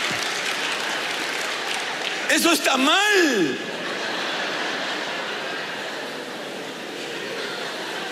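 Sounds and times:
audience applause: 0:00.0 - 0:06.0
speech: 0:02.3 - 0:03.7
laughter: 0:02.3 - 0:08.0.

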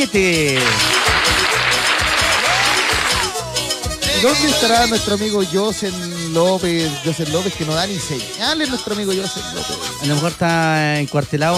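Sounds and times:
speech: 0:00.0 - 0:01.0, 0:04.2 - 0:11.5
crowd applauding: 0:00.4 - 0:03.5.

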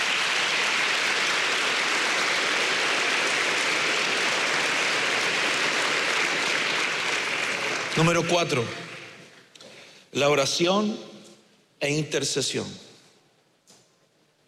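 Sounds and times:
audience applause: 0:00.0 - 0:09.2
speech: 0:08.0 - 0:08.8, 0:10.1 - 0:11.1, 0:11.8 - 0:12.9.

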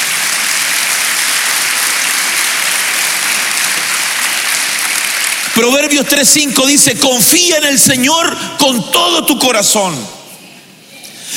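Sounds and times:
audience clapping: 0:00.0 - 0:06.8
speech: 0:05.6 - 0:10.2.

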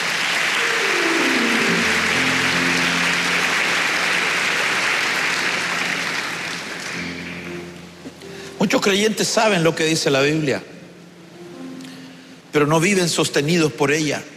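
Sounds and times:
audience clapping hands: 0:00.0 - 0:08.0
speech: 0:08.8 - 0:10.8, 0:12.6 - 0:14.3.

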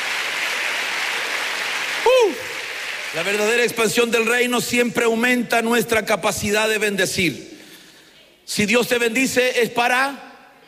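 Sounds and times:
audience clapping: 0:00.0 - 0:03.8
speech: 0:03.1 - 0:07.5, 0:08.5 - 0:10.3.

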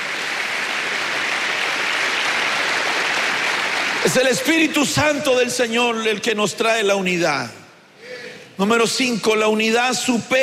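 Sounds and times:
audience applause: 0:00.0 - 0:04.4
speech: 0:04.0 - 0:07.6, 0:08.6 - 0:10.4.

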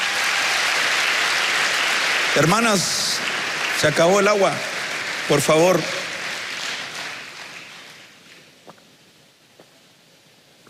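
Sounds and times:
audience applauding: 0:00.0 - 0:08.5
speech: 0:02.4 - 0:04.7, 0:05.3 - 0:06.0.

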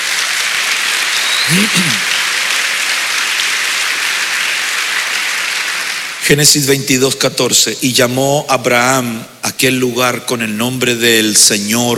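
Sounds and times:
audience clapping: 0:00.0 - 0:06.2
speech: 0:01.5 - 0:02.2, 0:06.2 - 0:11.9.

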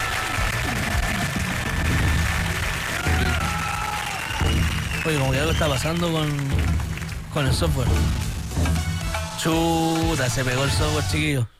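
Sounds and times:
crowd applause: 0:00.0 - 0:08.5
speech: 0:05.0 - 0:06.8, 0:07.4 - 0:08.7, 0:09.4 - 0:11.5.

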